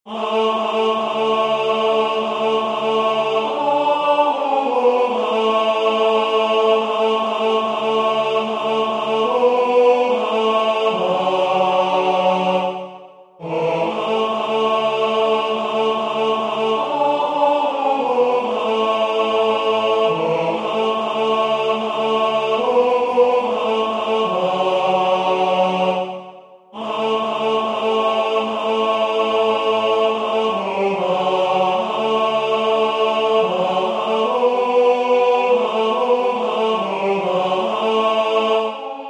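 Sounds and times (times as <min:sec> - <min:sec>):
tenor singing: 0:00.1 - 0:39.0.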